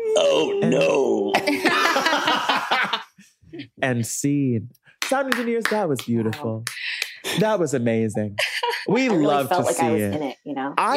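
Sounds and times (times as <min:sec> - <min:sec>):
young girl frightened whimpering and sobbing: 0:00.0 - 0:01.4
speech: 0:00.6 - 0:01.7, 0:03.8 - 0:10.9
laughter: 0:00.7 - 0:03.2, 0:06.0 - 0:10.1.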